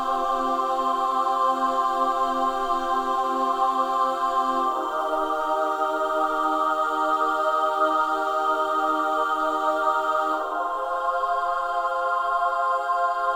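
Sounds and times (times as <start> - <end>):
choirs singing: 0.0 - 13.3.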